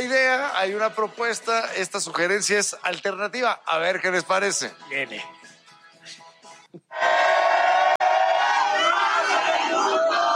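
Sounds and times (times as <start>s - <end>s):
speech: 0.6s - 5.5s
crowd shouting a chant: 7.0s - 10.3s.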